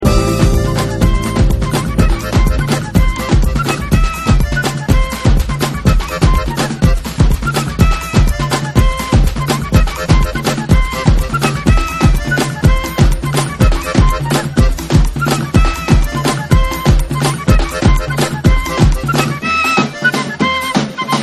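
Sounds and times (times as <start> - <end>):
electronic superjazz: 0.0 - 21.2.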